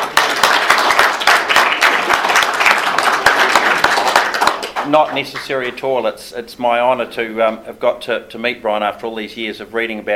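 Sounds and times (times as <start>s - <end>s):
audience applause: 0.0s - 5.5s
speech: 4.9s - 10.1s.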